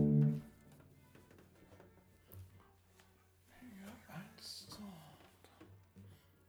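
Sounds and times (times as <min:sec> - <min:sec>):
person's voice: 0:03.6 - 0:05.3.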